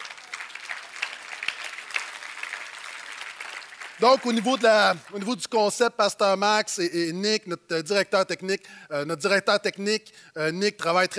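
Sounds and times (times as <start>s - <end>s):
audience applause: 0.0s - 5.5s
speech: 4.0s - 11.1s.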